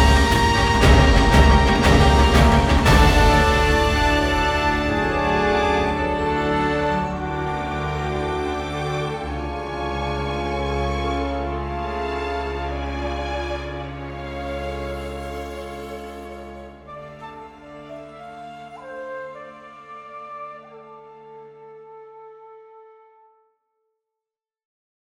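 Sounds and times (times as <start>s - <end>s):
dramatic music: 0.0s - 19.6s.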